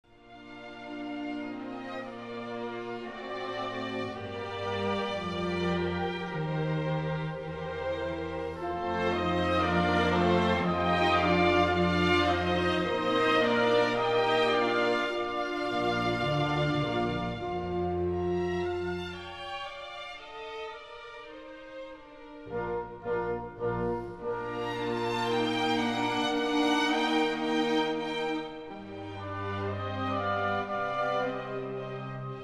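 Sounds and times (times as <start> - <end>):
piano concerto: 0.2 - 32.4.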